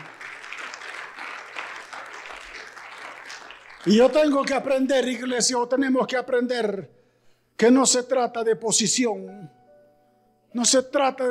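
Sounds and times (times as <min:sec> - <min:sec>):
audience applause: 0:00.0 - 0:04.7
speech: 0:03.8 - 0:07.0, 0:07.6 - 0:09.6, 0:10.5 - 0:11.2.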